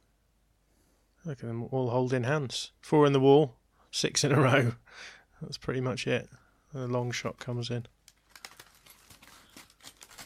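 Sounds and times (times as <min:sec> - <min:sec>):
speech: 0:01.2 - 0:08.0
rustling while breaking off Easter egg: 0:07.4 - 0:10.2.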